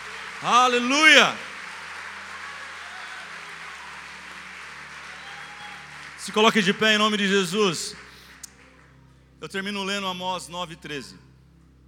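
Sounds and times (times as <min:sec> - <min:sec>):
audience applauding: 0:00.0 - 0:09.0
speech: 0:00.4 - 0:01.5, 0:06.3 - 0:08.1, 0:09.4 - 0:11.3.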